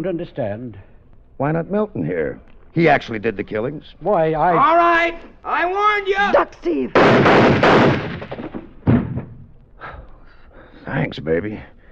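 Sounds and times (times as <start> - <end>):
speech: 0.0 - 8.4, 10.8 - 11.7
pistol gunshot: 7.0 - 9.5.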